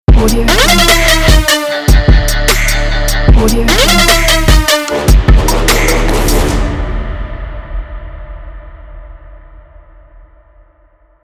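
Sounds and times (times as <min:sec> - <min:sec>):
punchy trap logo sting: 0:00.1 - 0:07.8.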